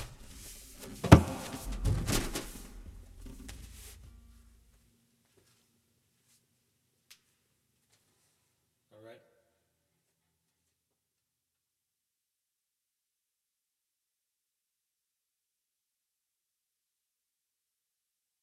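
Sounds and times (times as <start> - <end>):
acoustic session music: 0.5 - 4.8.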